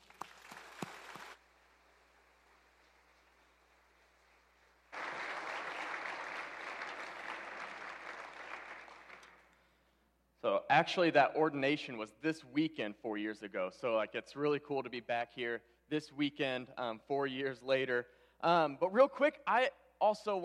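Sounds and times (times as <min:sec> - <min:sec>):
audience applause welcoming a speaker at a church service: 0:00.0 - 0:01.4, 0:04.9 - 0:09.5
speech: 0:10.4 - 0:20.4.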